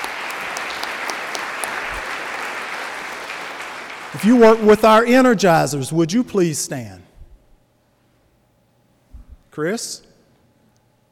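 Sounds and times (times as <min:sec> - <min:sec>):
audience clapping: 0:00.0 - 0:05.4
speech: 0:04.1 - 0:07.0, 0:09.6 - 0:10.1.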